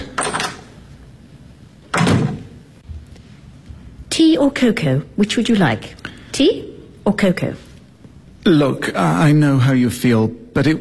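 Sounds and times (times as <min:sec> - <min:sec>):
back door closing: 0:01.9 - 0:03.0
speech: 0:04.4 - 0:07.6, 0:08.4 - 0:10.7.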